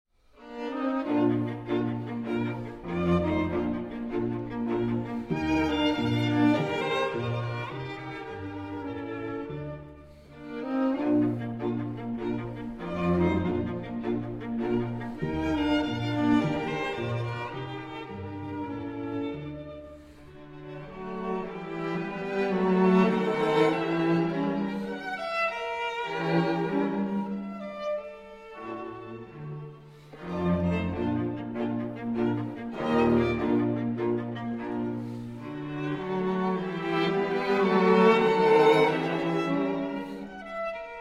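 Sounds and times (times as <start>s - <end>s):
string quartet in B-flat major: 0.2s - 41.0s.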